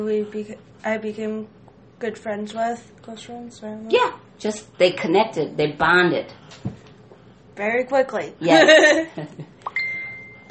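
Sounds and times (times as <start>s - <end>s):
speech: 0.0s - 6.7s, 7.6s - 9.5s
phone notification beeps: 9.7s - 10.4s.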